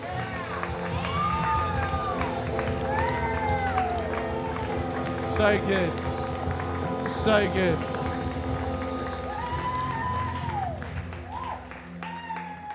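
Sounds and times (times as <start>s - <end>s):
crowd clapping: 0.0s - 12.7s
speech: 5.4s - 6.1s, 7.1s - 7.9s.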